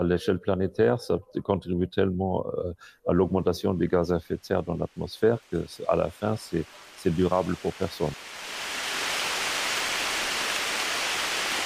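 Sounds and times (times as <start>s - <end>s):
speech: 0.0s - 8.4s
sudden tropical rain downpour in forest: 5.2s - 11.6s.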